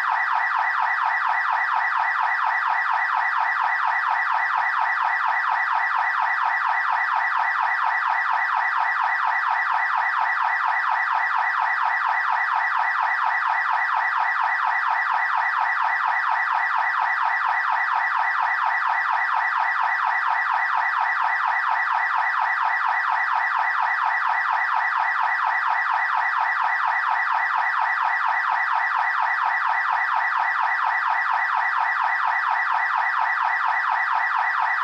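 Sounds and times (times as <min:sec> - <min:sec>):
automobile car alarm: 0:00.0 - 0:34.8.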